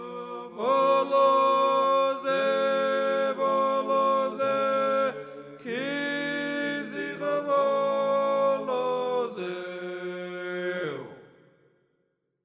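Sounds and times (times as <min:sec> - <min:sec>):
boys singing the first voice part: 0:00.0 - 0:11.1.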